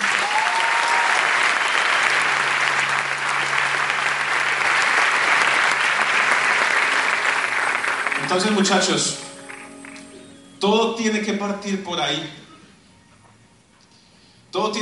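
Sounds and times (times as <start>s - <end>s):
crowd applauding: 0.0s - 10.3s
speech: 8.3s - 9.2s, 10.6s - 12.4s, 14.6s - 14.8s.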